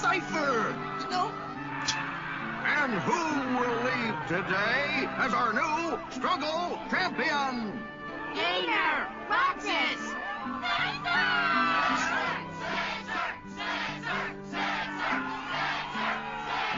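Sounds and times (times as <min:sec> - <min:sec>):
crowd cheering and yelling: 0:00.0 - 0:16.7
speech: 0:02.9 - 0:11.6.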